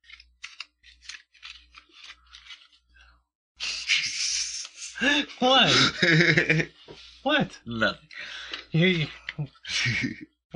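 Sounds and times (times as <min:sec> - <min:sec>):
deck of playing cards shuffled during a card trick: 0:00.0 - 0:02.8
laughter: 0:04.9 - 0:06.8, 0:09.7 - 0:10.2
speech: 0:05.0 - 0:10.5.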